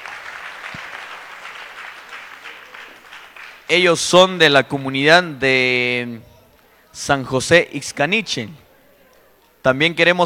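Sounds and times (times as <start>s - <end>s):
applause for the children's choir: 0.0s - 3.7s
speech: 3.7s - 6.3s, 7.0s - 8.6s, 9.6s - 10.2s.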